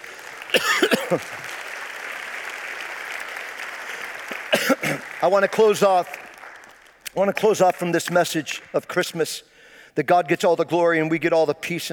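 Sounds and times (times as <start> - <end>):
round of applause from a crowd: 0.0 - 7.0
speech: 0.6 - 1.4, 5.2 - 6.2, 7.1 - 11.9.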